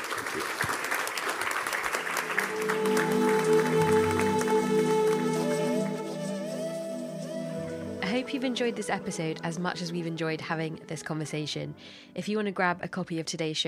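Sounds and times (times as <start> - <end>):
audience applause: 0.0 - 6.2
steady musical tone: 2.0 - 12.5
speech: 8.3 - 13.6.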